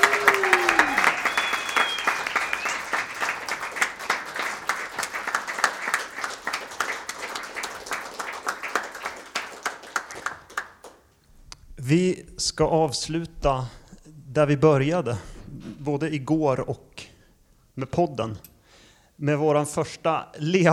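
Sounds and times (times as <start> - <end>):
whistle or cheer: 0.0 - 3.5
audience applause: 0.0 - 11.0
speech: 12.4 - 13.8, 14.4 - 15.3, 15.9 - 16.9, 17.8 - 18.5, 19.2 - 20.7.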